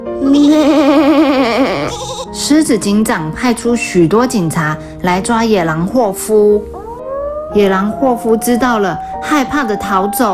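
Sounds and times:
lamb bleating: 0:00.2 - 0:02.4
speech: 0:02.4 - 0:06.8, 0:07.6 - 0:10.3.

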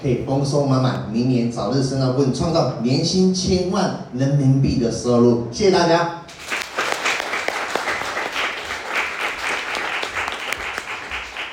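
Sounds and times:
speech: 0:00.0 - 0:06.2
audience applause: 0:06.3 - 0:11.5.

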